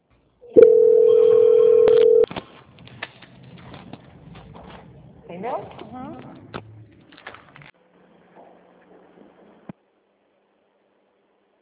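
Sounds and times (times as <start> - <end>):
telephone call transfer tone: 0.4 - 2.3
faint line noise with soft clicks: 1.8 - 2.5.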